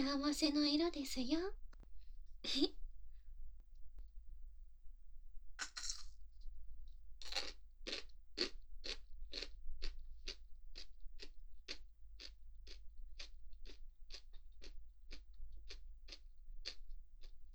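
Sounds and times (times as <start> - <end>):
speech: 0.0 - 1.6, 2.4 - 2.8
crunching of takuan pickled daikon radish with bonito flakes being eaten: 5.6 - 6.2, 7.2 - 17.5.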